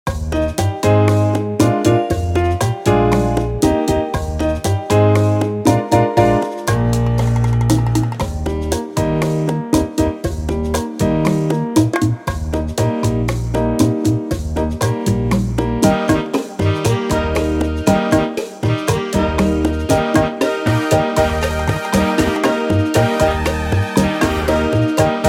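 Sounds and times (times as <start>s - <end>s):
guajira music: 0.1s - 25.2s.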